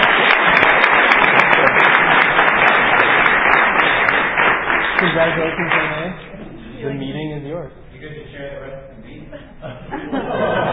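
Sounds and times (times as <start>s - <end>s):
crowd applause for a vote: 0.0s - 6.3s
speech: 5.2s - 6.0s, 6.8s - 10.7s
laughter: 9.1s - 10.7s.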